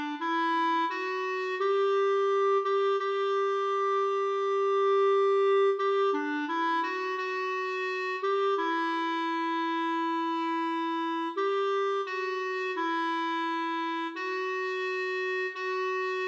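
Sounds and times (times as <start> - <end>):
clarinet playing slow foxtrot: 0.0 - 16.2.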